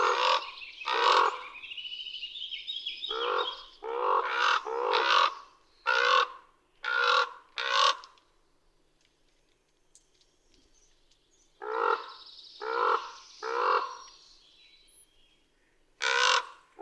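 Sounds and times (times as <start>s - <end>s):
common raven at Big Hole National Battlefield in Montana: 0.0s - 1.7s, 3.0s - 8.2s, 11.6s - 14.1s, 16.0s - 16.8s.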